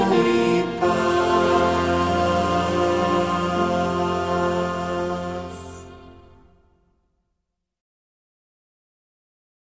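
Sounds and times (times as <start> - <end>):
Spanish vocal and instrumental hymns: 0.0 - 6.5.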